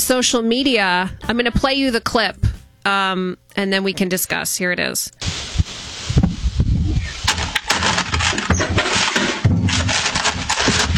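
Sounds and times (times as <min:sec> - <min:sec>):
speech: 0:00.1 - 0:05.4
thumps: 0:05.2 - 0:10.9
package crumpling on a porch: 0:07.2 - 0:10.9.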